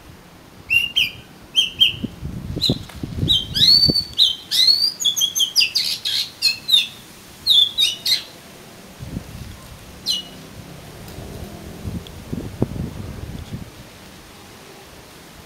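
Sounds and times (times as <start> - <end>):
Oriental magpie-robin singing: 0.7 - 8.4, 10.0 - 10.4.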